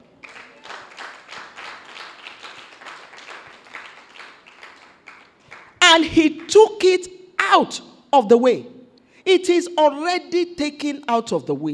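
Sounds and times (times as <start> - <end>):
audience applauding: 0.0 - 5.8
speech: 6.0 - 11.7.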